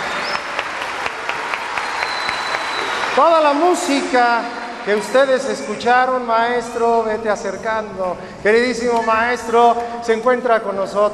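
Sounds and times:
audience applause for an orchestra and soloists: 0.0s - 5.0s
speech: 3.2s - 11.1s.

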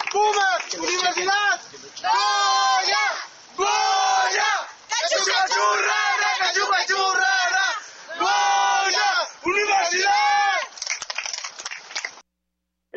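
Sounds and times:
stadium crowd roaring cheers: 0.0s - 12.2s
speech: 0.2s - 2.3s
large stadium crowd chanting: 2.0s - 10.3s.

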